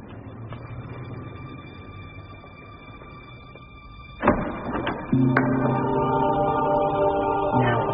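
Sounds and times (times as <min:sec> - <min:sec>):
street traffic: 0:00.0 - 0:07.9.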